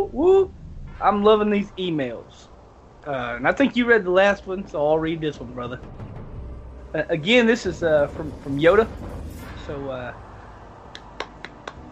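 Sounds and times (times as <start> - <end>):
speech: 0.0 - 6.1, 6.9 - 9.1, 9.7 - 10.3
fast hand clapping: 11.0 - 11.9.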